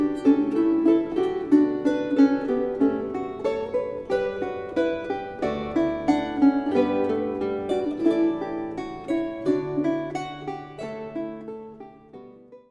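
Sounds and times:
acoustic guitar: 0.0 - 12.6
harp playing: 0.0 - 12.6.

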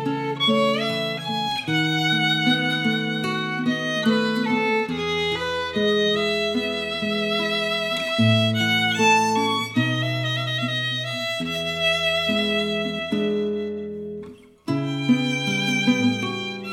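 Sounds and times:
guitar: 0.0 - 16.7
violin: 0.0 - 16.7.

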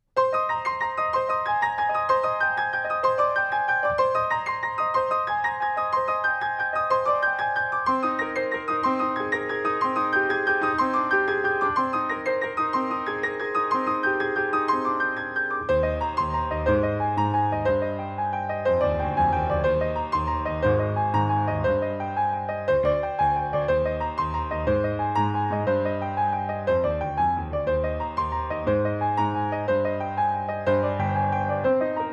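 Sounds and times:
classical piano: 0.0 - 32.1.

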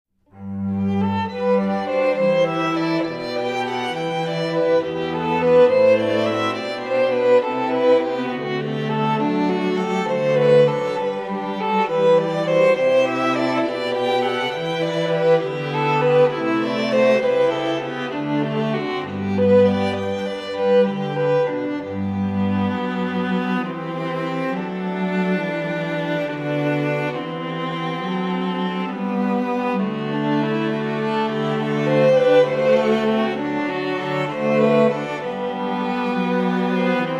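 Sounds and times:
string quartet: 0.3 - 37.1.

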